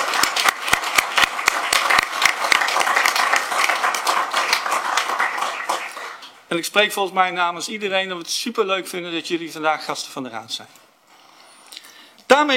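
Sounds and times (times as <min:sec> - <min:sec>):
council members applauding in a room: 0:00.0 - 0:06.4
speech: 0:06.5 - 0:10.8, 0:12.4 - 0:12.5.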